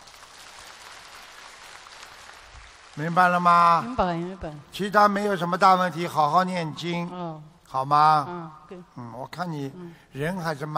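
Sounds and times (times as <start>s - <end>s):
audience applause: 0.0s - 3.9s
speech: 3.0s - 10.7s.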